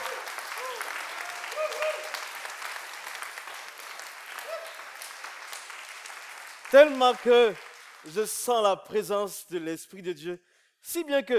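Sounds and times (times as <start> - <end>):
audience applauding: 0.0 - 8.5
speech: 6.7 - 11.3.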